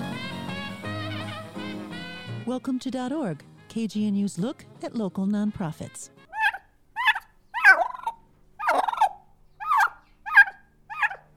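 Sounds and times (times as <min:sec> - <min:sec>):
speech: 0:02.5 - 0:06.2
turkey gobbling: 0:06.3 - 0:11.3.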